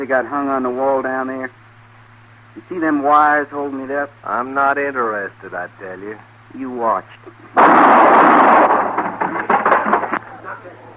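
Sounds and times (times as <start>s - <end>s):
speech: 0.0s - 1.6s, 2.6s - 8.1s
gunshots: 7.6s - 9.3s.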